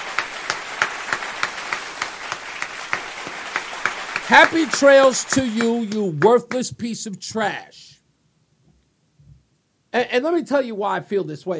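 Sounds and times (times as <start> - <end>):
single hand claps: 0.0 - 6.7
speech: 4.3 - 7.9, 10.0 - 11.5.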